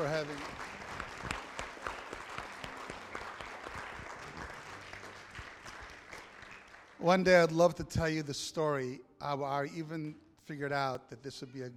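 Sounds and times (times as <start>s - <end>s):
speech: 0.0s - 0.7s, 7.0s - 11.7s
audience applause: 0.0s - 7.2s.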